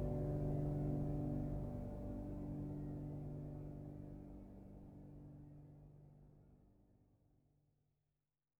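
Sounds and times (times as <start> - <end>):
peaceful piano music: 0.0 - 6.3.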